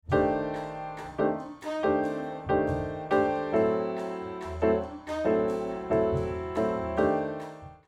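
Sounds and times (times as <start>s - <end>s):
processed piano mix: 0.0s - 7.8s.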